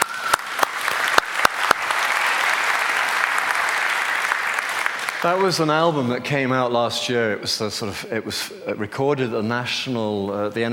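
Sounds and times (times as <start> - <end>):
audience clapping: 0.0 - 6.0
speech: 5.2 - 10.7.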